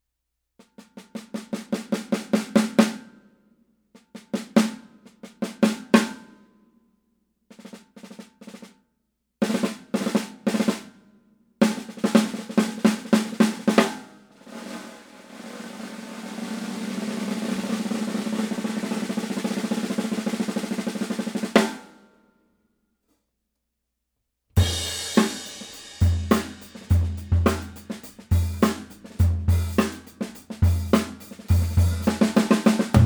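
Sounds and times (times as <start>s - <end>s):
Craviotto maple 4.5x14 snare drum: 0.6s - 3.2s, 4.0s - 6.4s, 9.4s - 11.0s, 11.6s - 22.0s, 24.6s - 33.0s.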